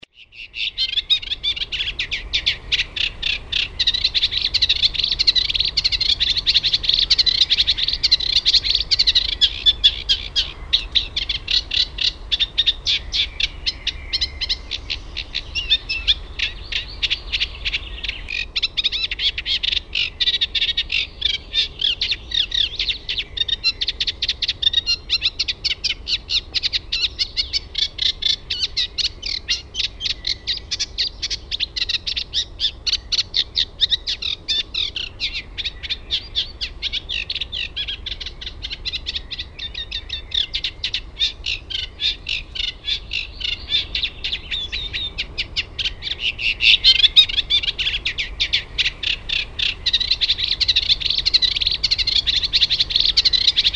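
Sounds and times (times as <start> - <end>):
Eurasian reed warbler: 0.0 - 53.7.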